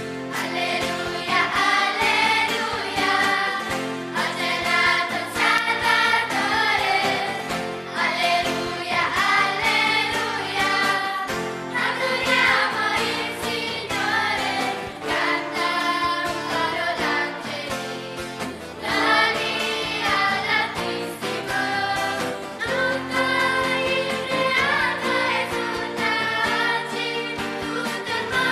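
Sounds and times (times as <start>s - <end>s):
choral alleluia song: 0.1s - 28.5s.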